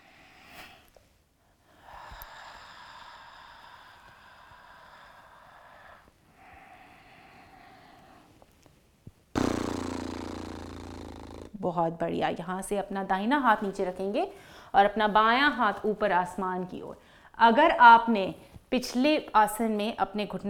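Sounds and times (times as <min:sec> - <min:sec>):
lip flutter while exhaling in a yoga breathing exercise: 0:09.4 - 0:11.6
speech: 0:11.6 - 0:20.4.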